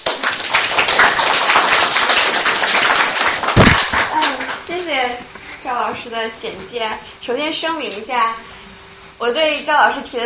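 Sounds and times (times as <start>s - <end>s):
crowd applauding: 0.0s - 4.6s
speech: 5.0s - 8.6s, 9.2s - 10.2s.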